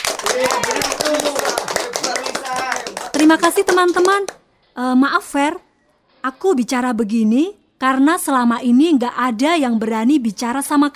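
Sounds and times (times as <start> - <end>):
group of friends applauding a classmate: 0.0 - 4.4
speech: 0.3 - 2.3, 3.3 - 10.9.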